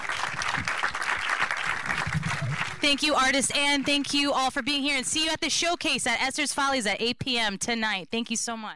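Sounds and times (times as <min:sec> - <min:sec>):
audience applause: 0:00.0 - 0:04.1
speech: 0:02.8 - 0:08.7.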